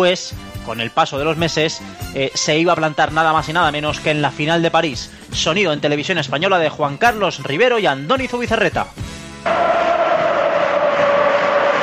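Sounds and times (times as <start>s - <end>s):
speech: 0.0s - 9.8s
football crowd roaring at Mestalla stadium during a Valencia match: 9.4s - 11.8s.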